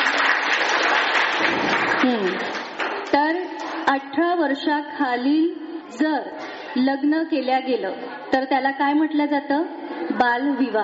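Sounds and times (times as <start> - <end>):
students in a classroom clapping: 0.0 - 3.8
speech: 4.0 - 10.8.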